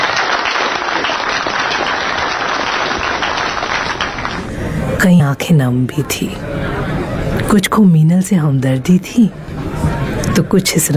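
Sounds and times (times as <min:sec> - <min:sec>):
crowd applauding: 0:00.0 - 0:05.0
speech: 0:05.0 - 0:06.8, 0:07.5 - 0:09.4, 0:10.4 - 0:10.9.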